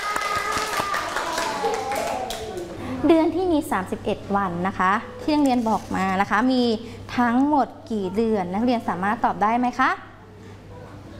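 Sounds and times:
hand clapping for students in a classroom lesson: 0.0 - 2.8
speech: 3.0 - 10.1.

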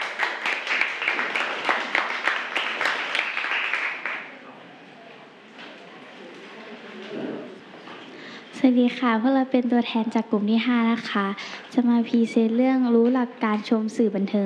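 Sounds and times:
classroom applause: 0.0 - 4.4
room murmur with faint talk: 0.0 - 14.4
speech: 8.6 - 14.4.

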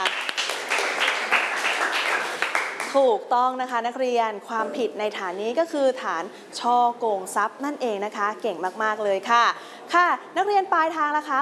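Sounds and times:
students clapping for a classmate in class: 0.0 - 3.0
speech: 2.9 - 11.3.

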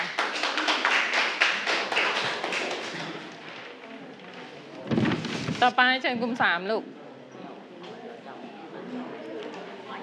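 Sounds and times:
group clapping hands: 0.0 - 3.8
speech: 5.6 - 7.0.

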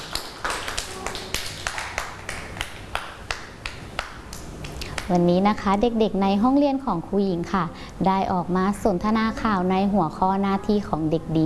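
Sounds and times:
children clapping hands: 0.0 - 5.1
speech: 5.1 - 11.4.

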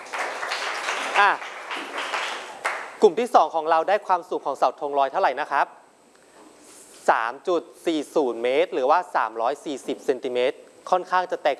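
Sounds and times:
classroom applause: 0.0 - 3.0
speech: 1.2 - 2.0, 3.0 - 5.8, 7.1 - 11.5.

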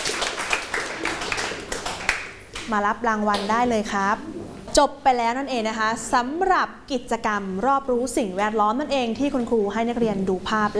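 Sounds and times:
students clapping for a classmate in a classroom activity: 0.0 - 2.7
speech: 2.7 - 10.7.

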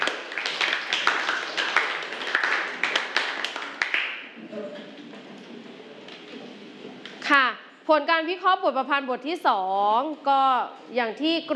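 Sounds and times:
group clapping hands: 0.0 - 5.0
speech: 7.9 - 11.5.

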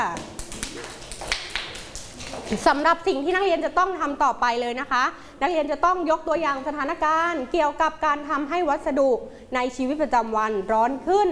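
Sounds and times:
classroom applause: 0.2 - 2.2
speech: 2.5 - 11.3.

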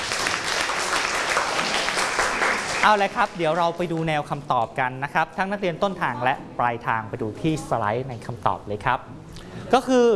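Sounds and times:
students clapping for a classmate: 0.0 - 3.8
speech: 2.8 - 10.1.

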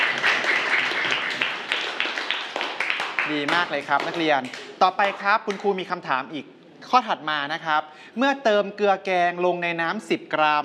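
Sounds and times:
classroom students clapping: 0.0 - 5.8
speech: 3.3 - 10.6.

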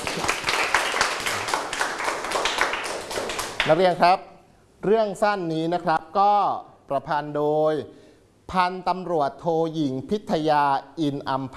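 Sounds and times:
applause: 0.0 - 3.9
speech: 3.7 - 11.5.

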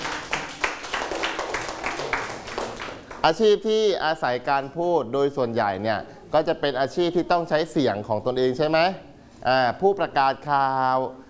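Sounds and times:
group clapping: 0.0 - 3.4
speech: 3.2 - 11.2.

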